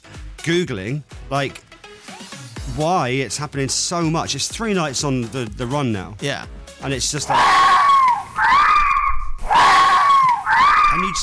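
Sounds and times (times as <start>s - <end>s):
speech: 0.4s - 1.7s, 2.7s - 7.7s
fox screams at night: 7.2s - 11.2s.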